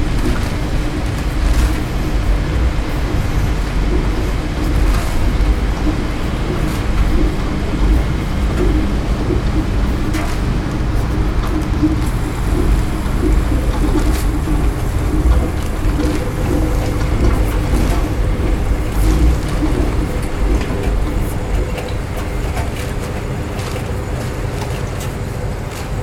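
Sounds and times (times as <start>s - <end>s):
laundromat machines rumbling: 0.0s - 26.0s.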